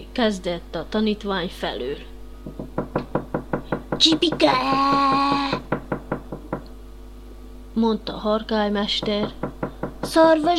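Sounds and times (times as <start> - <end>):
speech: 0.2 - 2.8, 4.0 - 5.7, 7.8 - 10.5
woodpecker knocking on beech trunk: 2.4 - 6.7, 9.0 - 10.3.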